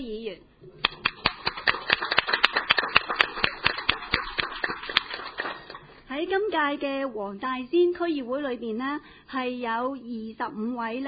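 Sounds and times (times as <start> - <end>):
speech: 0.0 - 0.9, 6.3 - 11.0
group of people applauding: 0.8 - 6.0.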